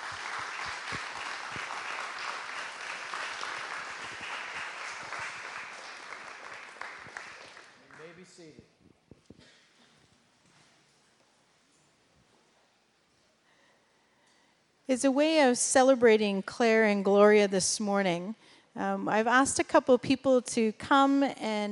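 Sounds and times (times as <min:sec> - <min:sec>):
congregation applauding new church members: 0:00.0 - 0:08.5
speech: 0:14.9 - 0:21.7.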